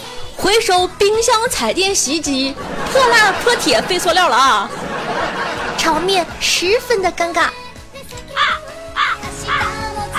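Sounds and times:
speech: 0.4s - 7.6s
laughter: 2.4s - 6.6s
crow cawing: 8.4s - 9.8s.

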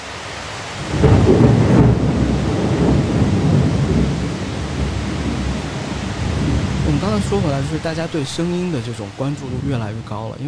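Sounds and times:
heavy rain: 0.0s - 10.4s
thunder: 0.8s - 8.4s
speech: 7.2s - 10.4s.

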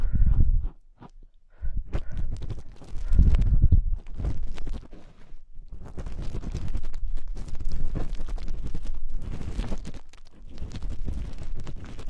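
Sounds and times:
ear cleaning with various sticks, scratchy rubbing: 2.0s - 12.0s.

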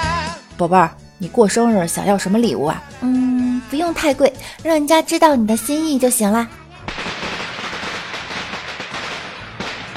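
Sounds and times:
speech: 0.6s - 6.6s
firecrackers set off downstairs: 6.8s - 9.9s.

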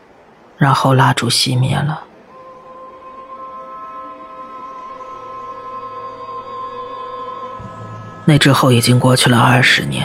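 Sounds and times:
speech: 0.6s - 2.1s, 8.3s - 10.0s
subway train passing: 2.0s - 10.0s.

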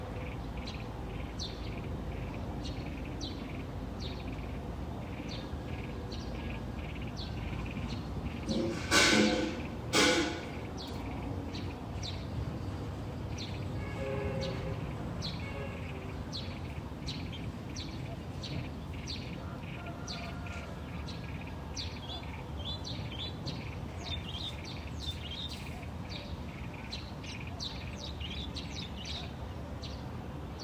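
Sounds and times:
birds chirping in the Dali morning: 0.0s - 30.6s
rooster crowing: 19.4s - 21.2s.

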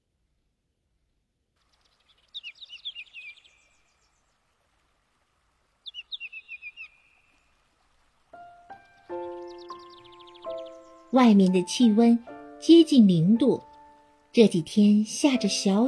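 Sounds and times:
birds singing: 1.8s - 4.4s, 5.8s - 7.7s, 8.4s - 15.8s
speech: 11.1s - 13.7s, 14.4s - 15.8s.

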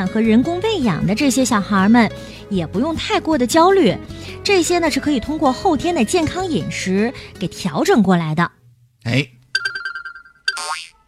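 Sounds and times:
speech: 0.0s - 9.4s
phone ringtone: 9.5s - 11.0s.

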